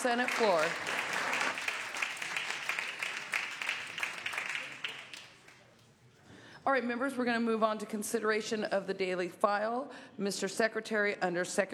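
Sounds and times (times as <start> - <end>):
speech: 0.0 - 0.9, 6.6 - 11.7
senators applauding on the Senate floor: 0.0 - 5.7.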